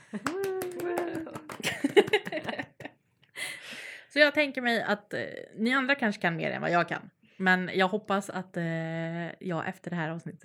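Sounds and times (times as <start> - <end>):
applause from a few people: 0.0 - 2.9
laughter: 0.0 - 2.9
speech: 0.1 - 0.4, 4.2 - 10.4.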